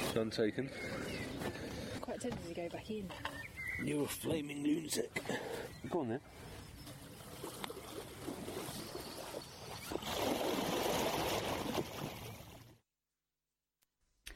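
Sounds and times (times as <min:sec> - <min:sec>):
speech: 0:00.1 - 0:01.0, 0:02.2 - 0:06.5
people splashing around in cold water: 0:06.9 - 0:12.7.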